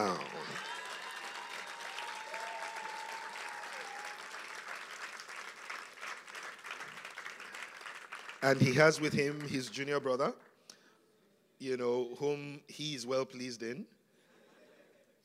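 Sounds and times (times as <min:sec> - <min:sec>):
audience applause: 0:00.0 - 0:09.7
speech: 0:08.4 - 0:10.4, 0:11.6 - 0:14.0.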